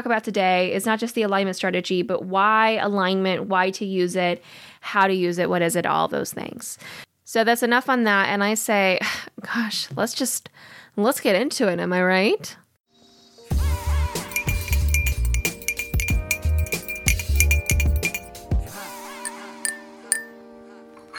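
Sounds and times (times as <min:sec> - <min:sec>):
speech: 0:00.0 - 0:12.6
teacup clinking while sipping tea: 0:14.2 - 0:18.3, 0:19.2 - 0:20.4.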